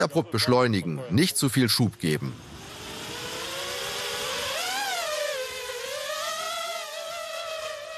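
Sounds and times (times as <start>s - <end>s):
speech: 0.0s - 2.5s
flying drone motor buzzing: 2.2s - 7.9s.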